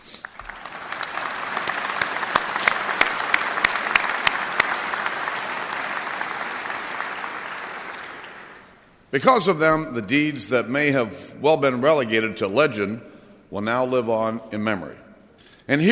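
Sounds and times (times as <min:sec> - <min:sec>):
audience applauding: 0:00.0 - 0:08.9
speech: 0:09.1 - 0:15.0, 0:15.7 - 0:15.9.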